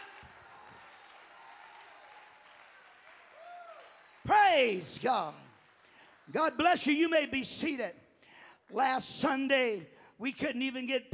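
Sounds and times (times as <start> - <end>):
crowd audience clapping and cheering: 0.0 - 7.4
speech: 4.5 - 5.4, 6.3 - 8.0, 8.7 - 11.1.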